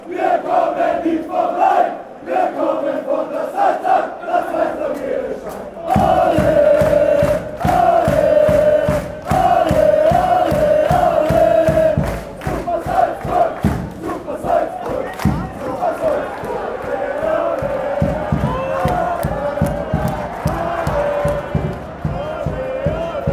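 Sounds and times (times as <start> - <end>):
fans chanting: 0.0 - 23.3.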